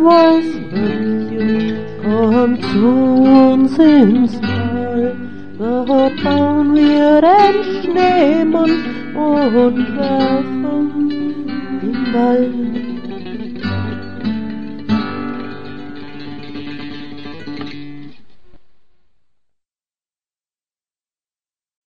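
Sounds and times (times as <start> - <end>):
person singing a children's Christmas song: 0.0 - 14.7.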